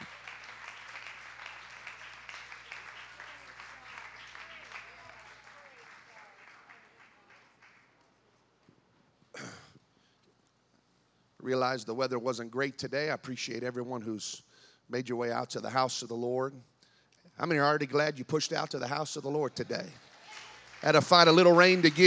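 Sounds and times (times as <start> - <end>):
audience clapping hands: 0.0 - 8.3, 19.3 - 22.0
speech: 11.5 - 16.7, 17.4 - 20.1, 20.8 - 22.0.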